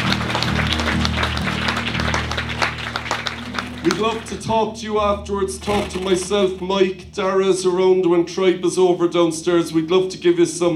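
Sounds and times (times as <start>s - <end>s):
audience applause: 0.0s - 4.4s
speech: 3.8s - 10.7s.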